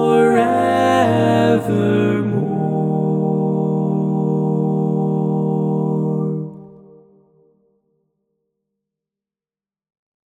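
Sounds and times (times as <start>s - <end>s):
tenor singing: 0.0s - 6.9s.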